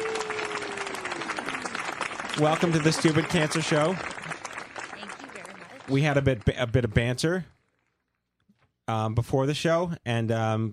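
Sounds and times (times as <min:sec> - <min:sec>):
applause sound effect: 0:00.0 - 0:08.2
speech: 0:02.4 - 0:04.1, 0:05.9 - 0:07.5, 0:08.9 - 0:10.7.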